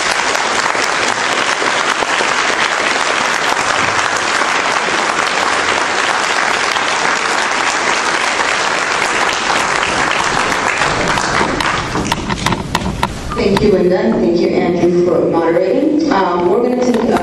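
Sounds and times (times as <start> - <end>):
round of applause: 0.0 - 12.6
speech: 13.6 - 17.1.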